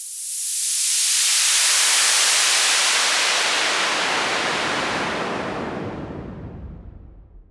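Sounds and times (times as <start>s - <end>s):
waterfall: 0.0s - 5.3s.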